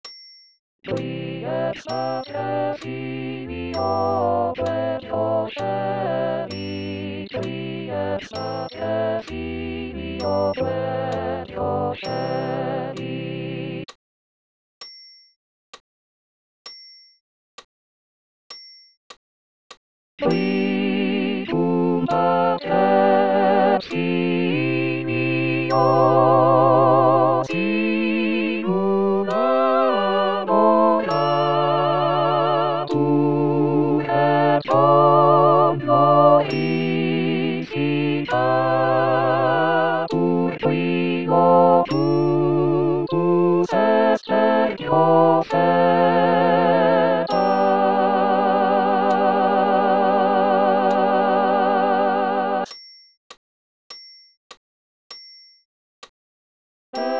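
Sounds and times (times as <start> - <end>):
choir singing a Credo with all voices: 0.9 - 13.9, 20.2 - 52.7, 57.0 - 57.1.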